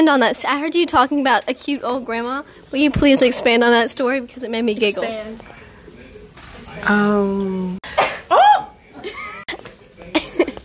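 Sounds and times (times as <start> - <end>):
speech: 0.0 - 5.6, 6.8 - 7.8
person sneezing: 7.8 - 8.7
laughter: 9.0 - 10.6.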